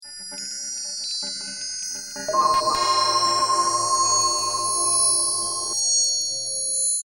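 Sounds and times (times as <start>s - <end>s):
lullaby music: 2.3s - 5.8s.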